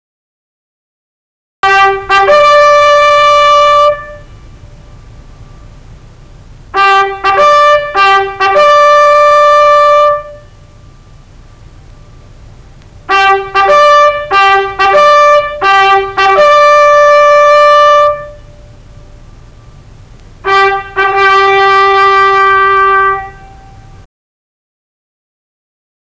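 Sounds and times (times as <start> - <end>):
trumpet: 1.6 - 4.4, 6.7 - 10.6, 13.1 - 18.6, 20.4 - 24.1.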